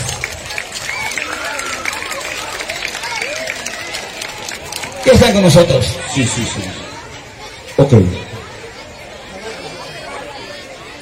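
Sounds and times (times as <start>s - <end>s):
audience applause: 0.0s - 6.4s
speech: 5.0s - 6.8s, 7.8s - 8.3s.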